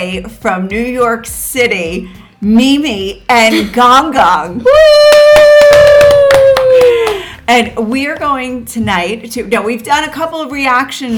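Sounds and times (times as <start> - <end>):
speech: 0.0 - 5.5, 7.5 - 11.1
rhythmic clapping: 4.7 - 9.6.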